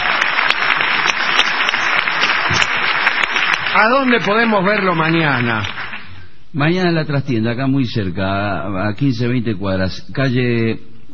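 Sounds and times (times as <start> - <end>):
crowd applauding: 0.0 - 6.2
speech: 3.8 - 5.8, 6.5 - 10.9.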